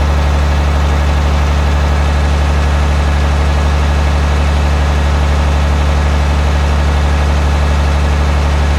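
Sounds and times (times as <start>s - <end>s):
Volvo engine running at 500 rpm: 0.0s - 8.7s.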